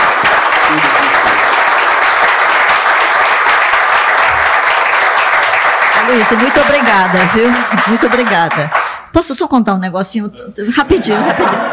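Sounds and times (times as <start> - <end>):
audience applause: 0.0 - 9.0
speech: 6.1 - 11.7
laughter: 10.7 - 11.7.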